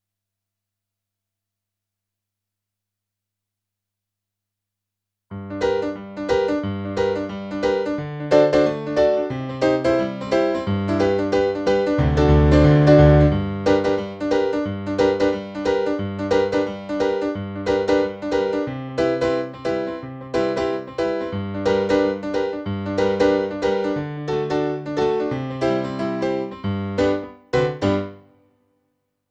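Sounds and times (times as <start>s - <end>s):
rock and roll piano: 5.3s - 28.3s.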